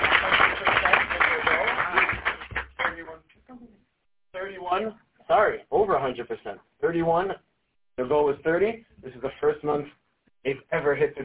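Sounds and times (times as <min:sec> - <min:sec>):
audience applause: 0:00.0 - 0:03.1
speech: 0:04.8 - 0:11.2.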